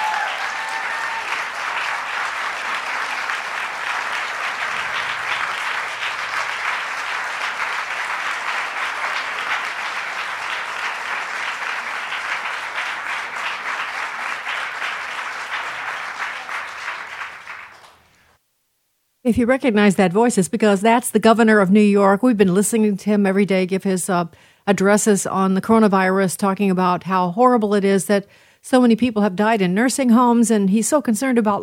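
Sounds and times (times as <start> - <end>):
audience applause: 0.0 - 18.2
speech: 19.3 - 31.6.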